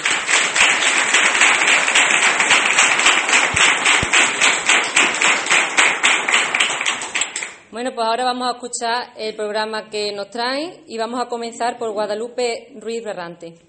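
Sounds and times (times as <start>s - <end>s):
audience applause: 0.0s - 7.6s
speech: 7.8s - 13.6s.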